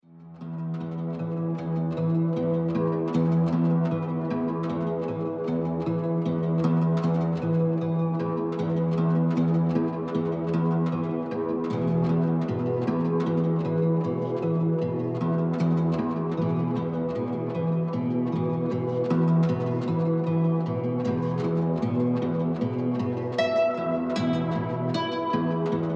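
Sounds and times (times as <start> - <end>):
quiet nylon guitar in E minor: 0.1 - 25.9.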